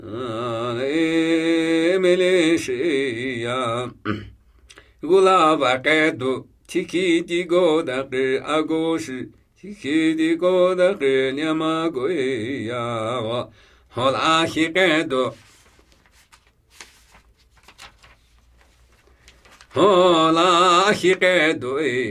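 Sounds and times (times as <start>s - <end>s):
Namuyi Tibetan ritual chanting: 0.0s - 4.0s, 5.0s - 15.7s, 19.6s - 22.0s.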